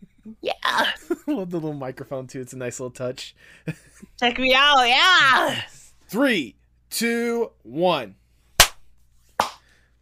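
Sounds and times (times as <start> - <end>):
speech: 0.3 - 8.2
hand claps: 8.6 - 8.8, 9.4 - 9.7.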